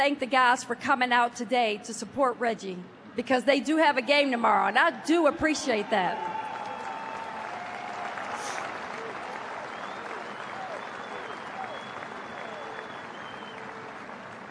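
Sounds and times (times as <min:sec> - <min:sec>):
speech: 0:00.0 - 0:06.4
audience clapping: 0:06.2 - 0:14.5.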